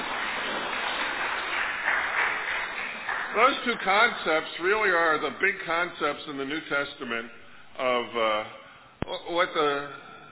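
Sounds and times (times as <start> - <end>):
crowd clapping: 0.0 - 5.2
speech: 3.4 - 10.0.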